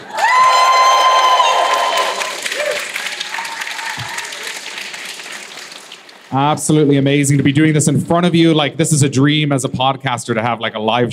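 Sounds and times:
live audience cheering and applauding: 0.0s - 6.4s
speech: 6.3s - 11.1s.

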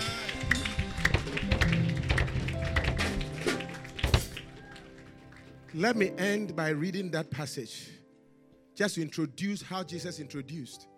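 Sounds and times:
audience clapping: 0.0s - 6.1s
speech: 5.8s - 8.0s, 8.8s - 10.9s.

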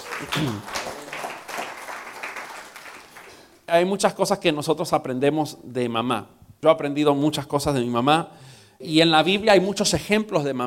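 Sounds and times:
audience applause: 0.0s - 3.5s
speech: 0.2s - 0.8s, 3.7s - 10.6s.

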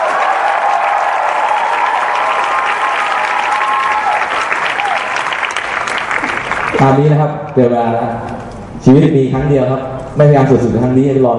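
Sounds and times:
audience applause: 0.0s - 7.1s
speech: 6.8s - 11.3s.

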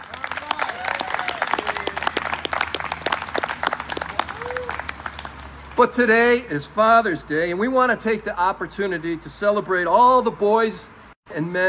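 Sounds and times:
audience cheering: 0.0s - 5.7s
speech: 5.8s - 11.6s.

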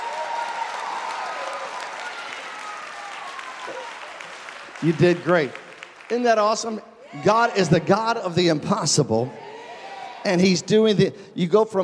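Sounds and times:
audience clapping: 0.0s - 6.8s
speech: 3.7s - 3.9s, 4.8s - 9.5s, 10.2s - 11.8s.

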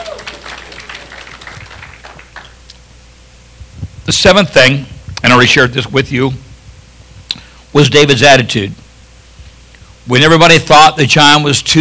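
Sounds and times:
audience hand clapping: 0.0s - 2.8s
speech: 4.1s - 6.4s, 7.7s - 8.8s, 10.1s - 11.8s.

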